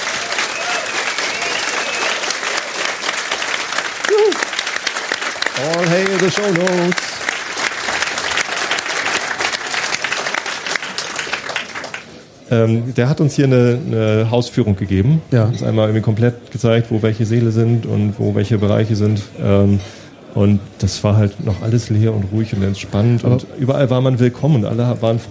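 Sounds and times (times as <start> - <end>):
enthusiastic applause: 0.0 - 12.2
speech: 5.6 - 7.1, 12.5 - 25.3.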